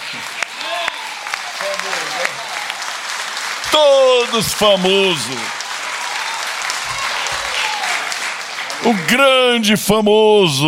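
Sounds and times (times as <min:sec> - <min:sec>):
audience applause: 0:00.0 - 0:10.6
speech: 0:00.1 - 0:00.4, 0:03.7 - 0:05.6, 0:08.8 - 0:10.6.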